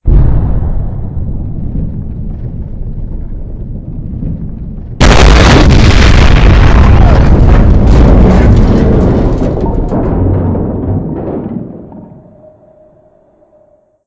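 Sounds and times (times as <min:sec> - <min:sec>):
nuclear explosion: 0:00.0 - 0:12.3.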